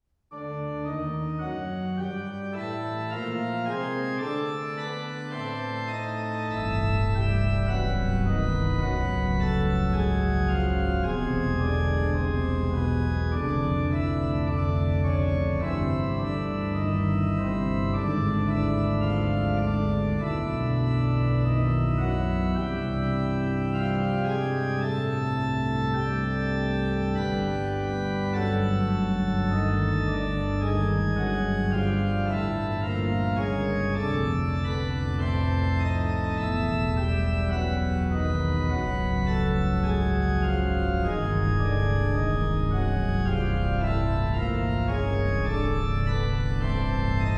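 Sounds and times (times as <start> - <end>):
organ playing canons: 0.3 - 47.3.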